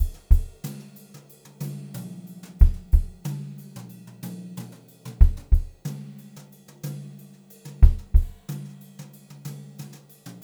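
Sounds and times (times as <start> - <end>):
brushed drum loops: 0.0 - 0.7, 2.6 - 3.2, 5.2 - 5.8, 7.8 - 8.5.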